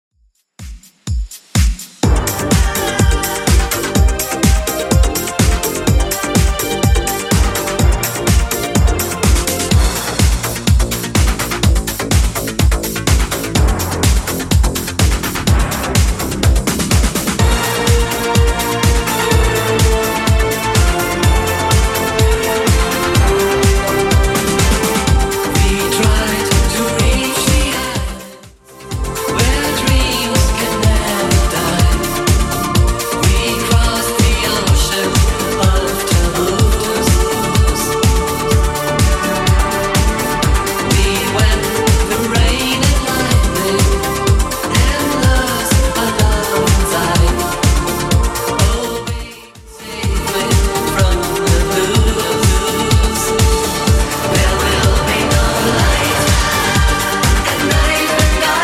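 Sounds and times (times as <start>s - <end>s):
80s Redrum drum machine beat: 0.2s - 58.6s.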